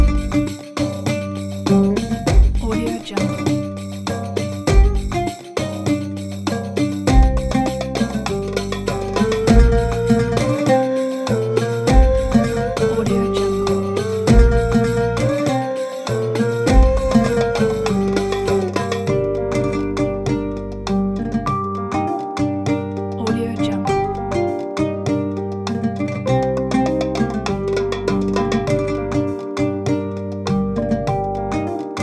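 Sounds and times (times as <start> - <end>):
Arabic folk percussion: 0.0 - 32.0
oud playing folk music: 0.0 - 32.0
ney playing folk music: 9.0 - 19.6.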